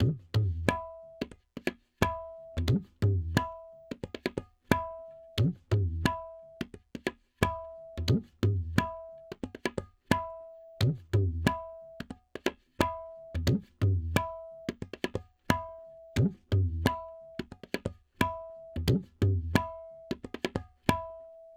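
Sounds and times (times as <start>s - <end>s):
tabla: 0.0s - 21.5s.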